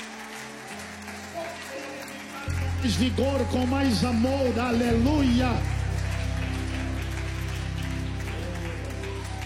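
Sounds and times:
church audience applause: 0.0s - 9.4s
speech: 2.5s - 5.8s.

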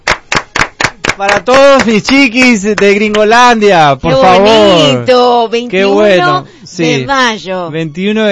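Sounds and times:
applause: 0.1s - 3.4s
speech: 1.2s - 8.3s.

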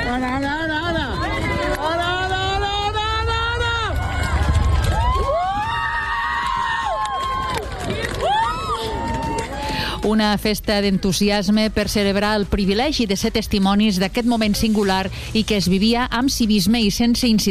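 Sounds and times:
crowd cheering in unison at solar eclipse: 0.0s - 11.7s
speech: 10.0s - 17.4s.

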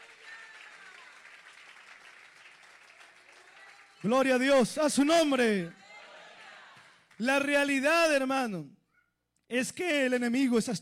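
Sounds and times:
audience applause: 0.0s - 4.4s
speech: 4.0s - 5.8s, 7.2s - 8.8s, 9.5s - 10.8s.

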